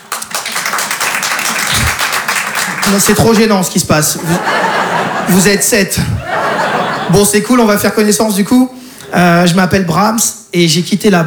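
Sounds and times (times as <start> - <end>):
sparse applause from a tiny stand-up comedy audience: 0.0 - 3.6, 4.2 - 5.4
laughter: 1.3 - 7.6
speech: 2.9 - 11.2.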